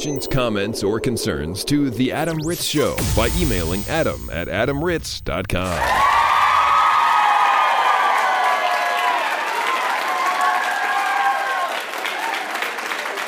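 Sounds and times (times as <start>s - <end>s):
speech: 0.0s - 6.2s
audience applause: 7.0s - 13.2s.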